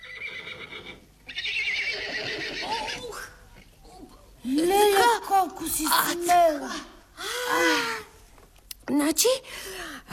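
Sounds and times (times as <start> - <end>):
horse whinnying: 0.0 - 3.4
speech: 5.5 - 6.9, 7.5 - 7.9, 8.9 - 10.1.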